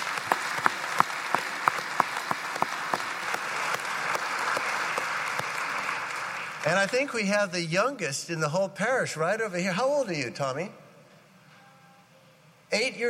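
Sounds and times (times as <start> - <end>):
audience applause: 0.0 - 7.3
speech: 6.6 - 10.8, 12.7 - 13.0.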